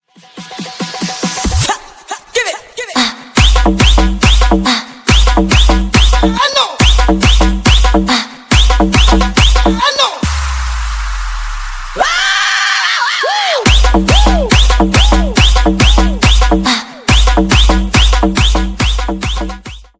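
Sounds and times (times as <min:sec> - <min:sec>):
tribal dance music: 0:00.0 - 0:12.3, 0:13.2 - 0:19.9.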